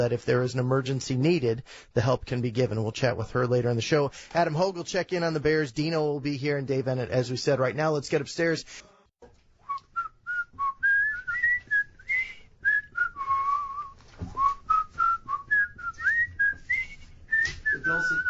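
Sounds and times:
speech: 0.0s - 9.3s
whistled jazz melody: 9.6s - 18.2s.

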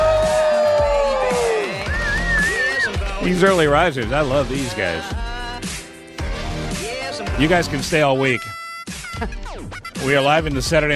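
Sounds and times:
long descending whistle: 0.0s - 3.1s
crowd cheering and hollering: 0.0s - 3.2s
speech: 3.2s - 5.3s, 7.4s - 8.6s, 9.2s - 10.9s.

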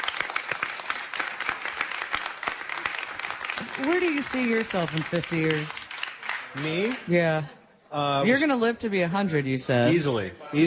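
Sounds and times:
applause from a small group: 0.0s - 7.2s
speech: 3.8s - 5.8s, 6.5s - 10.6s.

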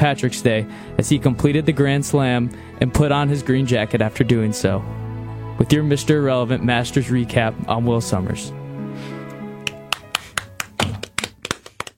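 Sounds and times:
speech: 0.0s - 5.0s, 5.6s - 9.1s
soft golf clap: 9.6s - 11.9s.

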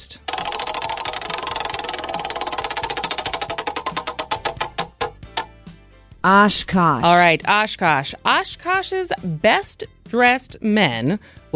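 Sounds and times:
radio show's big prize wheel spinning with clicking ticks: 0.2s - 5.5s
speech: 6.2s - 11.5s.

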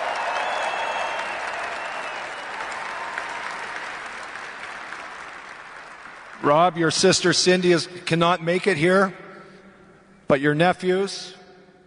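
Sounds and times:
crowd whooping and cheering: 0.0s - 5.5s
crowd clapping: 0.0s - 7.4s
speech: 6.4s - 9.2s, 10.3s - 11.4s.

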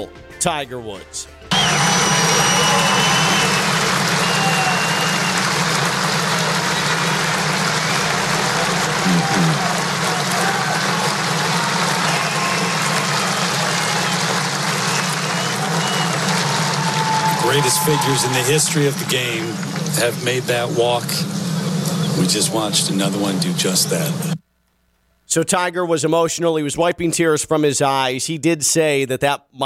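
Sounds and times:
speech: 0.0s - 2.9s, 17.5s - 21.4s, 22.2s - 24.4s, 25.3s - 29.6s
golf gallery ovation of clapping and cheering: 1.5s - 24.1s.

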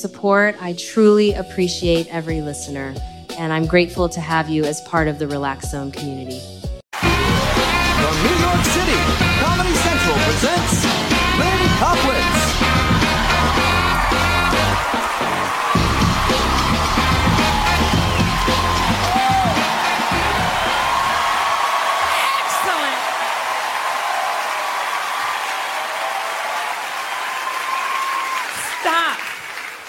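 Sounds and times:
speech: 0.0s - 6.6s
audience applause: 6.9s - 29.8s.

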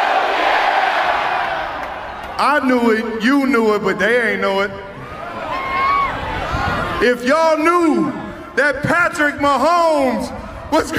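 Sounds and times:
crowd shouting hell yeah: 0.0s - 2.5s, 5.0s - 7.1s
speech: 2.4s - 4.9s, 7.0s - 10.9s.

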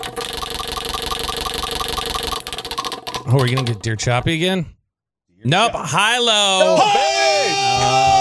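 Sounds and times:
prize wheel spinning: 0.0s - 4.1s
speech: 3.3s - 4.8s, 5.4s - 8.1s.

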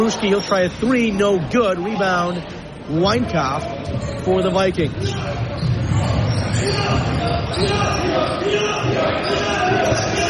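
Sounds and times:
speech: 0.1s - 10.2s
student section roaring at a boys' basketball game: 6.5s - 10.2s.

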